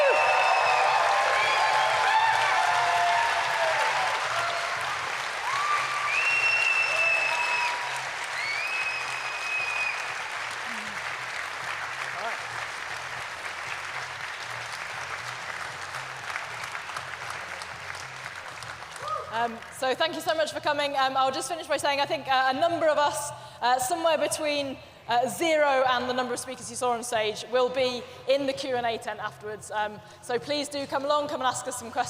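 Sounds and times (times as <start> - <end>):
audience round of applause: 0.0 - 19.7
speech: 19.4 - 32.0.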